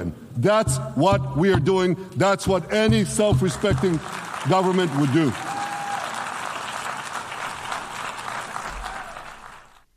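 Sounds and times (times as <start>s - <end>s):
speech: 0.0s - 5.6s
sparse applause: 3.2s - 9.9s.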